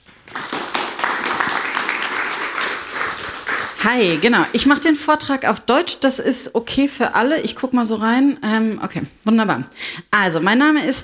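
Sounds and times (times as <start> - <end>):
audience applause: 0.0 - 4.5
speech: 3.8 - 11.0.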